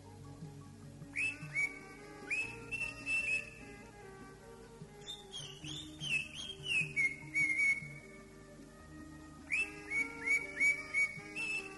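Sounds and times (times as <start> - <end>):
greater green leafbird whistling sliding notes: 1.1 - 3.7, 5.0 - 8.1, 9.4 - 11.7.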